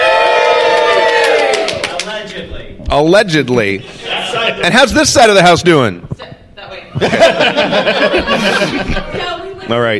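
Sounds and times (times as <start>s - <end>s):
live audience at a gaming convention cheering: 0.0s - 2.0s
scattered claps: 1.1s - 2.2s
speech: 2.9s - 6.1s, 6.9s - 9.9s
laughter: 3.8s - 4.9s, 6.9s - 9.5s.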